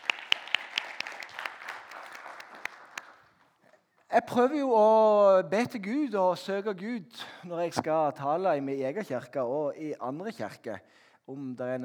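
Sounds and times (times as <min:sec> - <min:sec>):
audience applause: 0:00.0 - 0:03.3
speech: 0:04.1 - 0:11.8.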